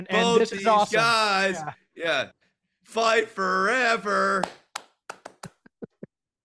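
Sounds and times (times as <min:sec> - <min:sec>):
speech: 0:00.0 - 0:04.6
sharp hand claps in a syncopated rhythm: 0:04.3 - 0:05.7.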